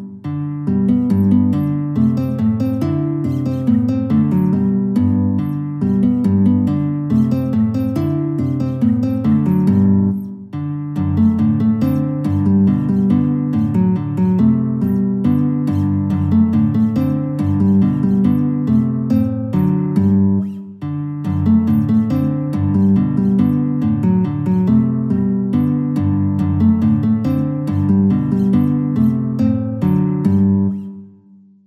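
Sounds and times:
German dance piece on guitar: 0.0 - 31.2.

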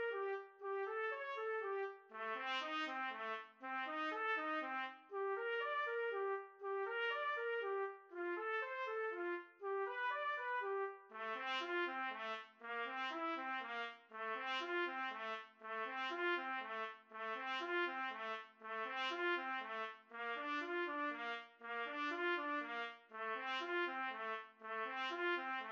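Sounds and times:
trumpet duet: 0.0 - 25.7.

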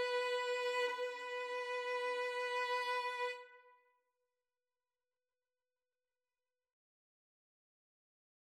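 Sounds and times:
violin and viola duet: 0.0 - 3.5.

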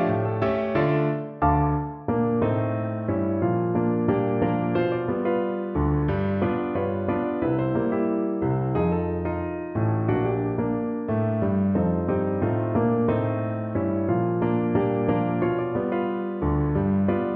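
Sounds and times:
piano piece: 0.0 - 17.3.

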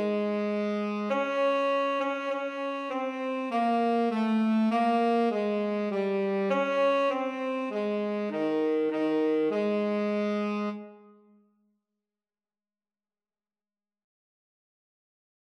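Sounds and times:
alto and tenor saxophone duet: 0.0 - 11.3.

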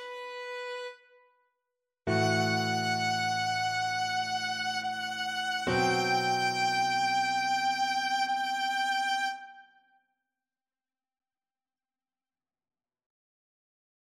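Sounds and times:
boogie violin: 0.0 - 1.0, 2.1 - 9.6.

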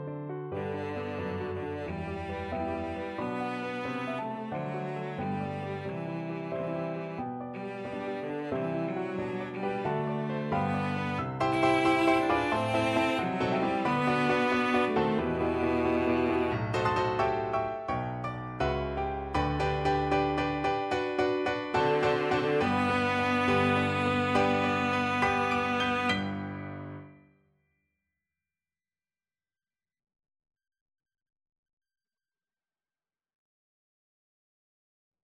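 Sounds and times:
cello: 0.2 - 27.1.

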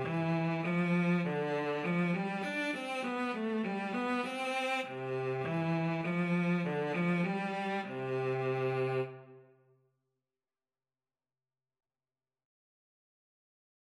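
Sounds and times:
viola and cello duet playing a carol: 0.0 - 9.3.

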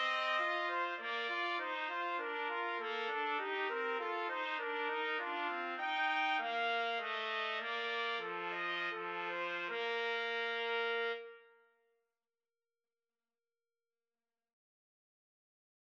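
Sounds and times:
trumpet melody for karaoke: 0.0 - 11.7.

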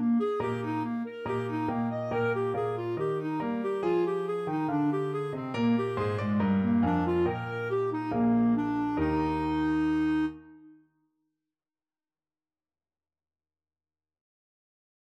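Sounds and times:
clarinet playing a bourree: 0.0 - 10.8.

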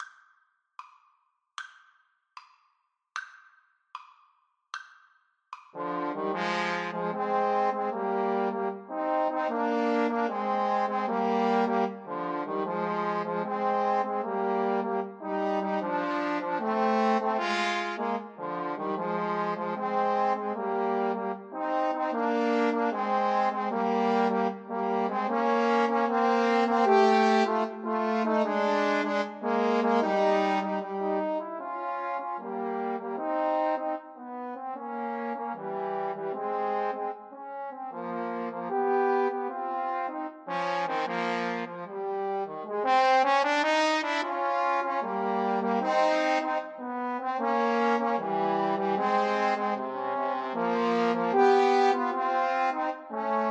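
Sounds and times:
trombone trio: 5.8 - 53.4.

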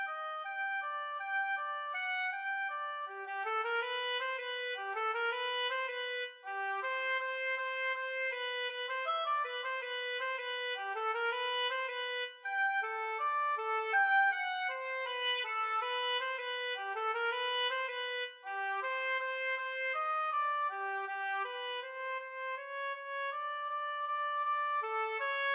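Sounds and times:
oboe duet: 0.0 - 25.5.

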